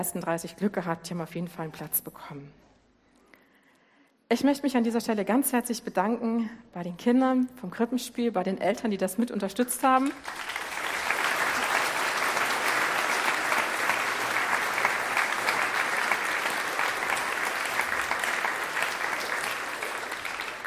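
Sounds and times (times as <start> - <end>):
speech: 0.0 - 2.6, 4.3 - 10.6
audience applause: 10.1 - 20.6.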